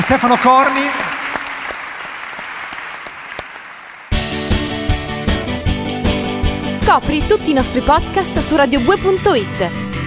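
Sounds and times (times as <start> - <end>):
speech: 0.0 - 1.0, 6.9 - 9.8
audience applause: 0.0 - 4.2
loud rhythmic music track: 4.1 - 10.0.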